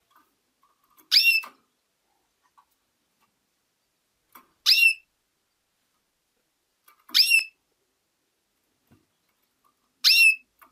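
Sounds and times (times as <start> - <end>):
female canary calls: 1.0 - 1.6, 4.6 - 5.1, 7.0 - 7.6, 10.0 - 10.5.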